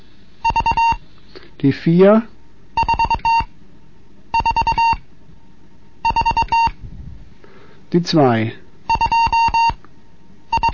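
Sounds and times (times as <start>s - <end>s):
Morse code beeps: 0.4s - 1.0s, 2.8s - 3.5s, 4.3s - 5.0s, 6.0s - 6.8s, 8.9s - 9.8s, 10.5s - 10.7s
speech: 1.6s - 2.3s, 7.9s - 8.6s.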